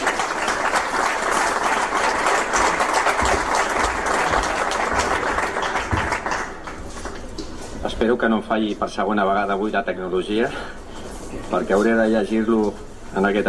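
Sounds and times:
audience applause: 0:00.0 - 0:07.2
speech: 0:08.1 - 0:10.8, 0:11.5 - 0:13.4.

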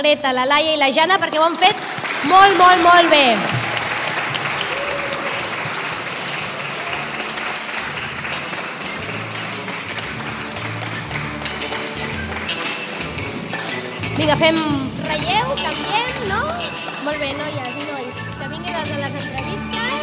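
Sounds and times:
speech: 0:00.0 - 0:03.6, 0:14.2 - 0:20.0
audience applause: 0:01.2 - 0:14.2, 0:15.7 - 0:17.6.

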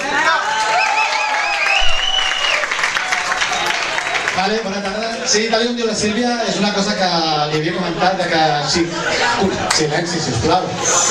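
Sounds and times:
audience applause: 0:00.0 - 0:05.3
speech: 0:05.3 - 0:11.0.

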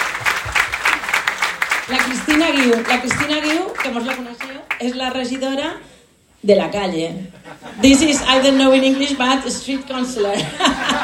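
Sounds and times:
audience applauding a team at a community event: 0:00.0 - 0:05.2
speech: 0:01.9 - 0:11.0
laughter: 0:07.3 - 0:11.0.

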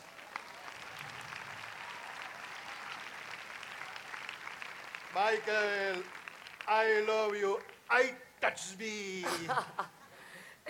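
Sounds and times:
audience applause: 0:00.0 - 0:08.0
speech: 0:05.2 - 0:10.0
laughter: 0:09.2 - 0:10.1.

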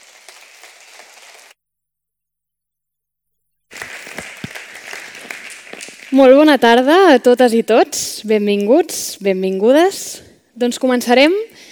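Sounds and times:
audience applause: 0:00.0 - 0:01.5, 0:03.7 - 0:06.1
speech: 0:06.1 - 0:11.6.

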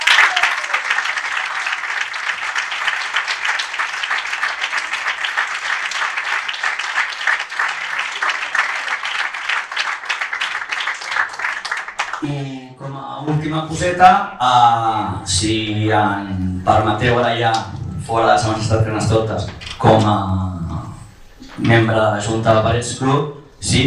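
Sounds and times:
crowd applause: 0:00.0 - 0:12.3
speech: 0:13.4 - 0:20.5, 0:21.6 - 0:23.8.

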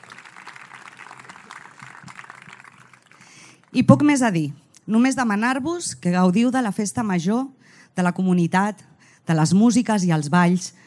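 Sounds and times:
audience applause: 0:00.0 - 0:03.4
speech: 0:03.7 - 0:10.8.

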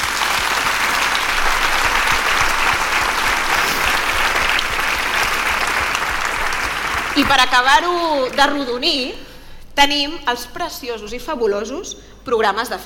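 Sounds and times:
audience applause: 0:00.0 - 0:08.8
speech: 0:07.2 - 0:09.2, 0:09.8 - 0:12.8.

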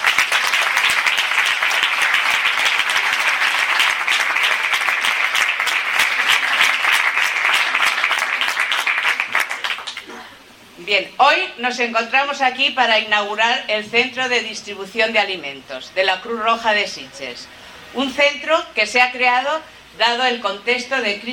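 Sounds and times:
loud audience applause: 0:00.0 - 0:10.1
speech: 0:10.9 - 0:21.3.

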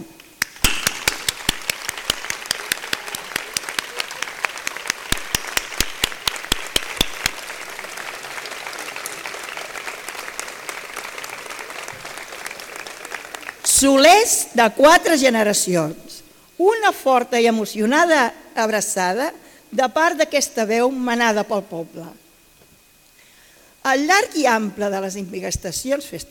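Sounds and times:
audience applause: 0:00.4 - 0:13.7
speech: 0:13.8 - 0:22.2, 0:23.8 - 0:26.2.

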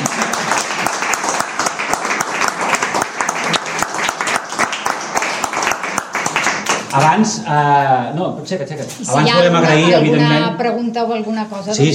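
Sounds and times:
audience applause: 0:00.0 - 0:07.3
speech: 0:07.0 - 0:11.9.

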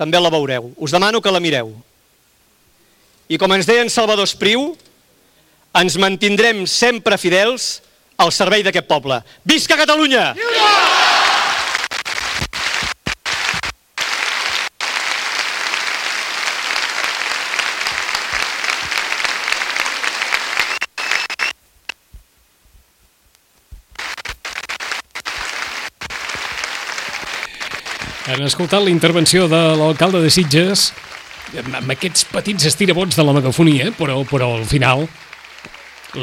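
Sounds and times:
speech: 0:00.0 - 0:01.9, 0:03.3 - 0:04.9, 0:05.7 - 0:11.0, 0:28.5 - 0:35.3
crowd applauding after the mayor of Sitges' speech: 0:10.4 - 0:21.5, 0:24.0 - 0:36.2.

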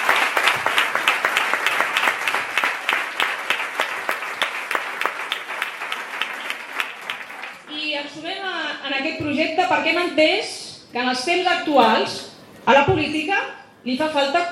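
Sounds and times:
audience applause: 0:00.0 - 0:07.7
speech: 0:09.0 - 0:14.5.

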